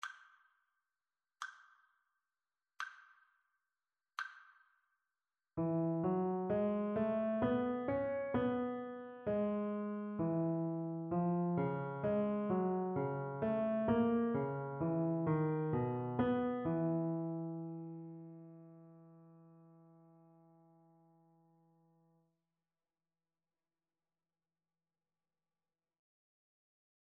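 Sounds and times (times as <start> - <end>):
partially completed melodic dictation melody: 5.6 - 18.1.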